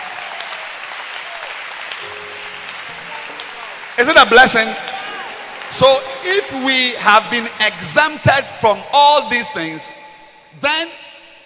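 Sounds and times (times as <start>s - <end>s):
crowd clapping: 0.0s - 7.8s
speech: 4.0s - 4.9s, 5.7s - 11.1s.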